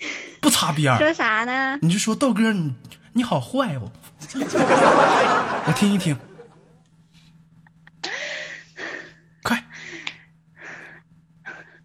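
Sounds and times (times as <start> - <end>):
speech: 0.6 - 6.3
laughter: 4.2 - 6.8
heavy breathing: 8.0 - 11.8.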